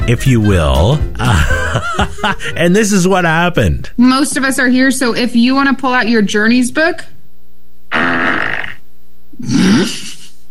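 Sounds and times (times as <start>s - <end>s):
speech: 0.1s - 7.1s, 9.4s - 10.1s
laughter: 1.2s - 3.2s
buzzy fart sound effects: 7.9s - 8.8s.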